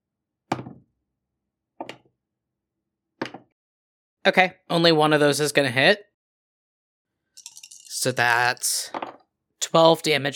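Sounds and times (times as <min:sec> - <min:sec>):
speech: 0:04.2 - 0:06.1, 0:08.0 - 0:09.0, 0:09.6 - 0:10.3
dice rolled on a table for attack rolls: 0:07.4 - 0:08.0.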